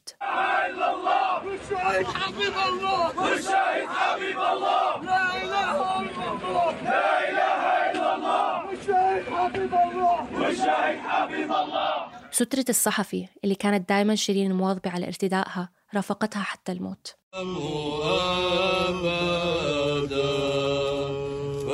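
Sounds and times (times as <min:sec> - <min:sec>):
crowd chanting slogans at a funeral: 0:00.2 - 0:12.3, 0:17.4 - 0:21.7
speech: 0:01.6 - 0:20.4.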